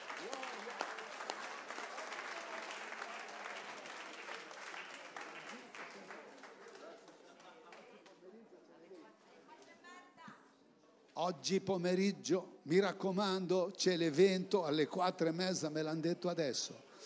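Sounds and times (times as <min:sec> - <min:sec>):
audience applause: 0:00.0 - 0:07.9
speech: 0:11.2 - 0:16.9.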